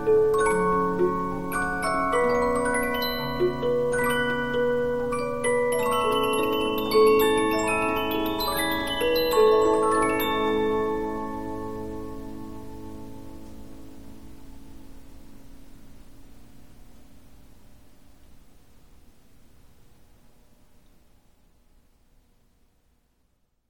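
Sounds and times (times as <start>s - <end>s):
Polyphon 15-inch disc music box playing: 0.0s - 12.7s.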